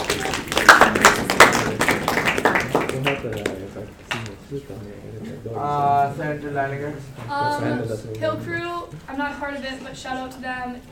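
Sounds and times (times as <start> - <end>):
gathering applauding for everyone involved in an event: 0.0 - 4.3
speech: 4.5 - 10.8.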